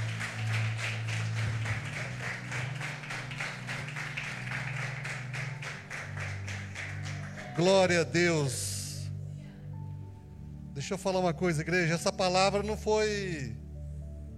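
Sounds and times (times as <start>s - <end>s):
audience clapping: 0.0s - 8.2s
low musical drone: 0.0s - 14.3s
speech: 7.6s - 8.6s, 10.8s - 13.6s.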